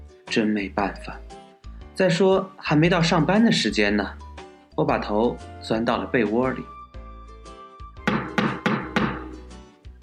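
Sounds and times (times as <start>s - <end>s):
speech: 0.3s - 1.4s, 2.0s - 4.2s, 4.8s - 6.8s
knocking on a window: 8.0s - 9.5s.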